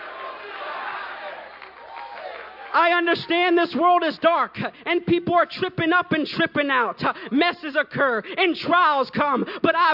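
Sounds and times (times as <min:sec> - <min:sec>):
crowd screaming and cheering: 0:00.0 - 0:02.8
speech: 0:02.8 - 0:09.9.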